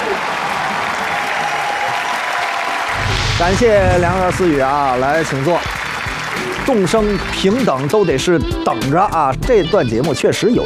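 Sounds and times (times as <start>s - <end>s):
large audience applause: 0.0s - 7.6s
speech: 3.4s - 5.8s, 6.6s - 10.6s.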